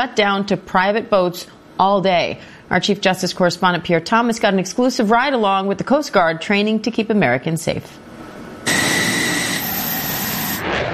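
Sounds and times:
speech: 0:00.0 - 0:08.8
F-16 fighter jet blasting off from Andrews Air Force Base: 0:08.2 - 0:10.9.

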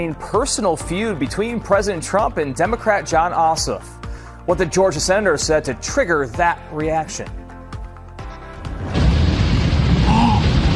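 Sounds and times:
speech: 0:00.0 - 0:07.4
gas tank exploding in flames with a crashing boom: 0:08.6 - 0:10.7
heavy roar of gas tank fire: 0:08.7 - 0:10.7.

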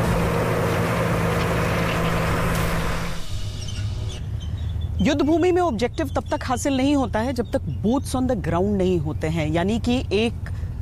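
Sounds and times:
armored vehicle engines rumbling: 0:00.0 - 0:10.8
speech: 0:05.0 - 0:10.8.

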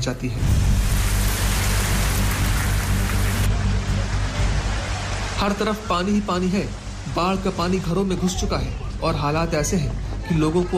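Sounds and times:
speech: 0:00.0 - 0:00.7, 0:05.4 - 0:10.7
heavy rain falling: 0:00.5 - 0:08.8.

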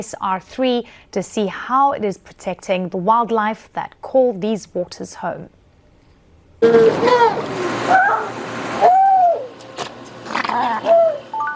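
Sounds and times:
speech: 0:00.0 - 0:05.6, 0:06.6 - 0:09.0
harbor seal pups calling at a rescue center: 0:06.6 - 0:09.5, 0:10.3 - 0:11.3.

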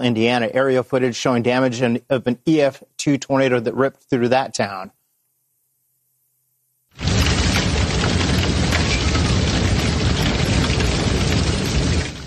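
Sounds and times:
speech: 0:00.0 - 0:05.0
hail battering the back porch of a home: 0:07.0 - 0:12.2
rain: 0:07.0 - 0:12.2.

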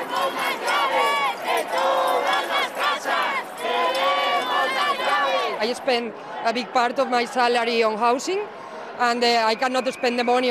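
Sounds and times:
protesters chanting over Spain's housing crisis: 0:00.0 - 0:07.9
speech: 0:05.6 - 0:10.4.

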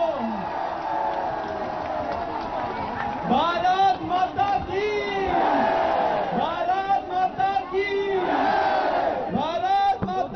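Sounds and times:
large crowd applause: 0:00.0 - 0:06.6
large crowd cheering: 0:00.0 - 0:09.6.

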